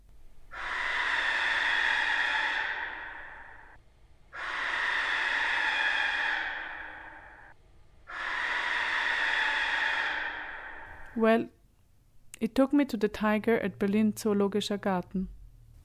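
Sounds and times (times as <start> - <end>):
slowed-down barn owl call: 0.5 - 11.2
speech: 11.2 - 11.6, 12.4 - 15.4.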